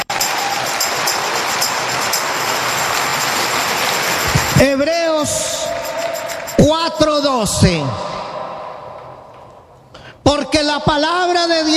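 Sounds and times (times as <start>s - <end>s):
audience applause: 0.0s - 6.7s
speech: 4.6s - 5.5s, 6.9s - 8.2s, 10.8s - 11.7s.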